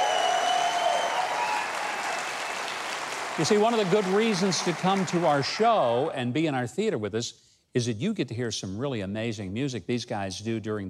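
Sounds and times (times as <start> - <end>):
studio audience applause for the house band during a theater show: 0.0 - 6.1
speech: 3.4 - 10.8.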